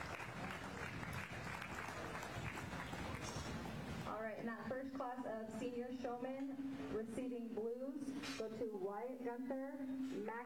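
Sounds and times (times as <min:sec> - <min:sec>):
audience applause at livestock show: 0:00.0 - 0:04.1
speech: 0:04.2 - 0:10.4.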